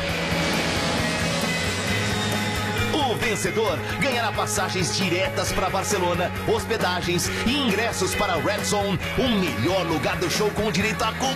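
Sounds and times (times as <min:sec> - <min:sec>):
airplane flying past: 0:00.0 - 0:04.1
speech: 0:03.3 - 0:11.3.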